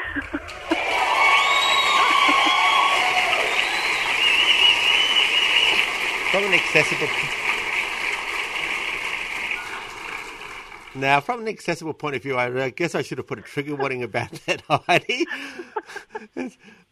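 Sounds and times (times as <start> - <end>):
laughter: 0.0 - 1.2, 1.8 - 3.4, 13.8 - 16.9
crowd applauding: 0.0 - 11.6
speech: 0.2 - 0.8, 6.3 - 7.5, 11.0 - 16.9
scattered whoops and shouts: 0.5 - 5.5.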